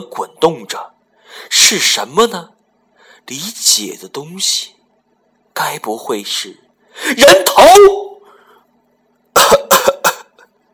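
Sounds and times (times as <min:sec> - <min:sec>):
speech: 0:00.0 - 0:02.6, 0:03.2 - 0:04.8, 0:05.6 - 0:08.1
person coughing from outside the room: 0:09.3 - 0:10.5.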